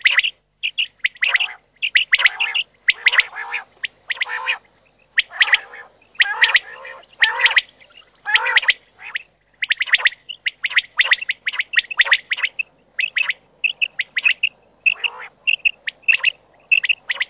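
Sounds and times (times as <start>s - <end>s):
Common quail calls: 0.0s - 17.2s.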